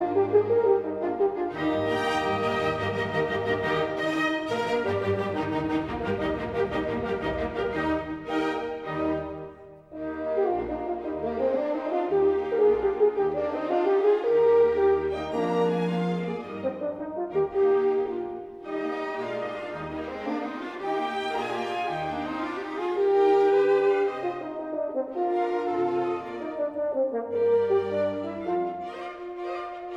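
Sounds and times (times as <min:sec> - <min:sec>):
horn concerto allegro: 0:00.0 - 0:29.9.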